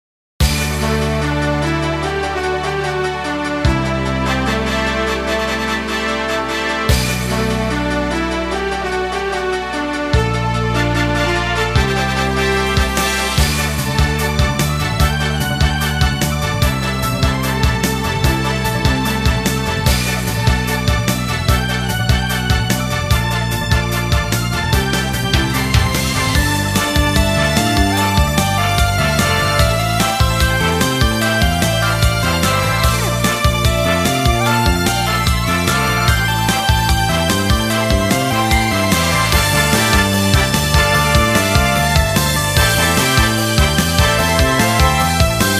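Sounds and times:
menu event music: 0.4 - 45.5.

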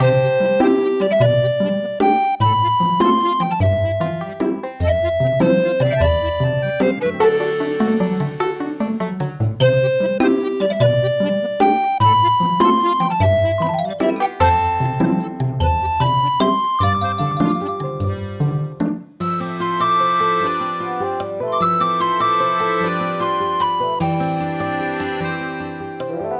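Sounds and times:
peaceful town music loop: 0.0 - 26.3.

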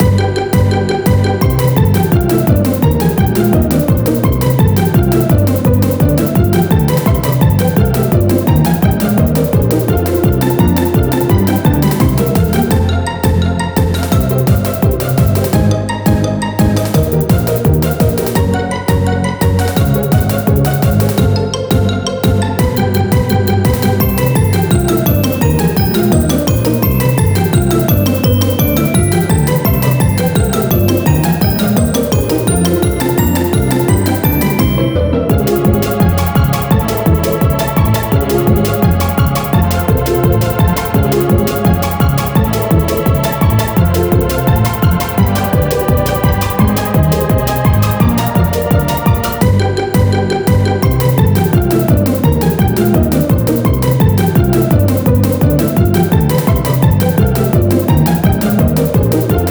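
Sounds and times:
music: 0.0 - 59.5.

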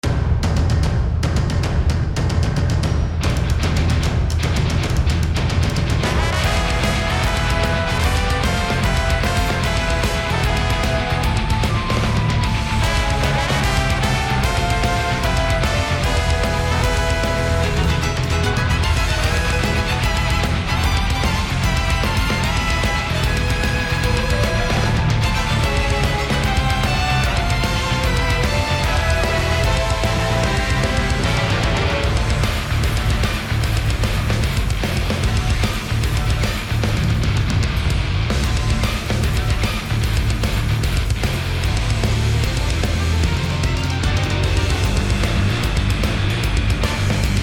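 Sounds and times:
arena battle ambience from the upper balcony: 0.0 - 47.4.

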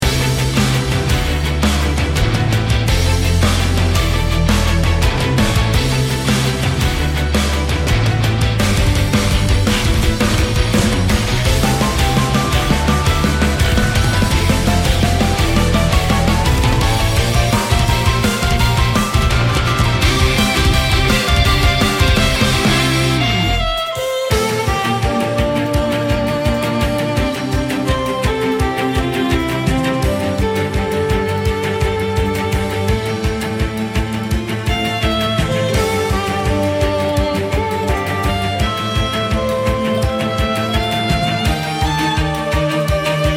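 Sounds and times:
battle music loop: 0.0 - 43.3.

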